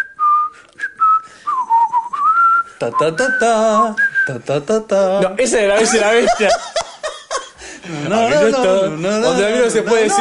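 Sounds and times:
person whistling a birdlike tune: 0:00.0 - 0:04.4
speech: 0:02.8 - 0:06.7, 0:07.8 - 0:10.1
laughter: 0:05.8 - 0:08.8, 0:09.4 - 0:10.1.

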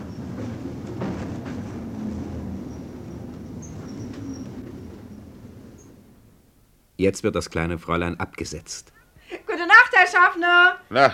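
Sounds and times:
tram driving fast along empty streets: 0:00.0 - 0:06.9
tram brakes squealing: 0:02.7 - 0:06.0
speech: 0:07.0 - 0:09.0, 0:10.0 - 0:11.1.

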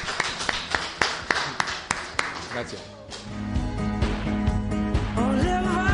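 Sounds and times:
hand claps: 0:00.0 - 0:05.8
speech: 0:02.6 - 0:03.9.

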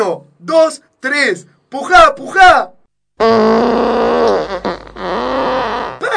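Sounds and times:
speech: 0:00.0 - 0:04.7
long buzzy fart: 0:03.2 - 0:06.1.

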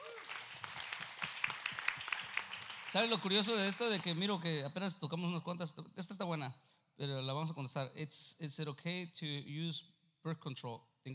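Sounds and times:
faint audience applause: 0:00.0 - 0:04.2
speech: 0:02.9 - 0:11.1.

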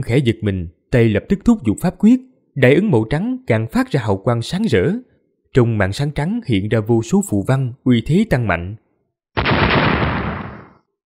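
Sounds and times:
speech: 0:00.0 - 0:08.8
thunderous explosion: 0:09.4 - 0:10.8.

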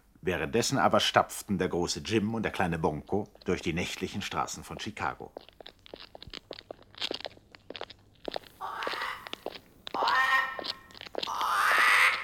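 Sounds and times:
speech: 0:00.2 - 0:06.1
crow calling: 0:08.6 - 0:12.2.

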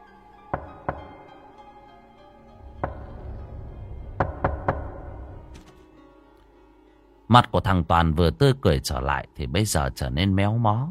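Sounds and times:
knocking on a door: 0:00.5 - 0:01.4, 0:02.7 - 0:05.4
faint tapping: 0:02.6 - 0:05.4
speech: 0:07.3 - 0:10.9.

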